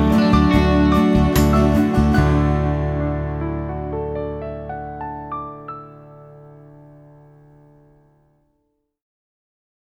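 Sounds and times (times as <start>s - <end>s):
fast D to Cadd9 chord progression: 0.0s - 7.8s.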